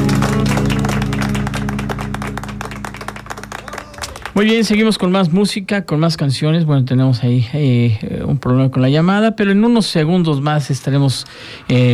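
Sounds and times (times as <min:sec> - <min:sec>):
applause: 0:00.0 - 0:05.1
speech: 0:04.4 - 0:11.9.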